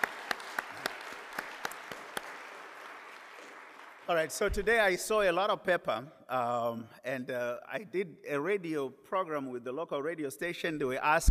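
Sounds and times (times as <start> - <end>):
audience applause: 0.0 - 4.5
speech: 4.1 - 11.2.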